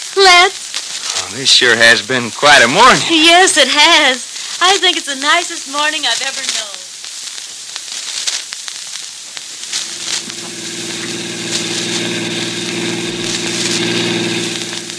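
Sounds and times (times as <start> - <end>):
speech: 0.2 - 0.6, 1.2 - 6.7
car engine running: 9.8 - 14.9.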